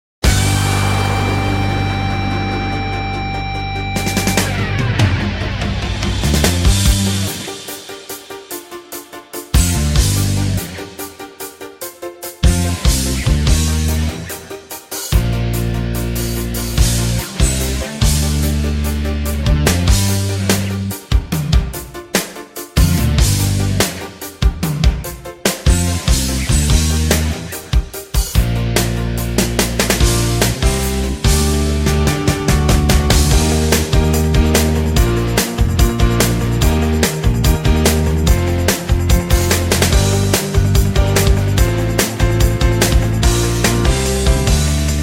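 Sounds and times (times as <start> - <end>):
instrumental music: 0.2 - 45.0.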